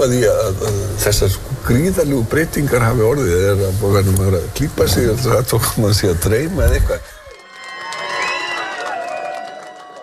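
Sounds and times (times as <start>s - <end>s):
speech: 0.0s - 7.2s
crowd cheering at election night party at Glerártorg: 7.2s - 10.0s.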